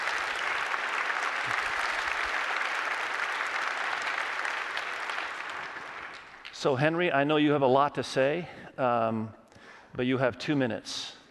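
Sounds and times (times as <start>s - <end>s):
congregation clapping to welcome a family at a church service: 0.0s - 6.8s
speech: 6.6s - 9.4s, 10.0s - 11.2s.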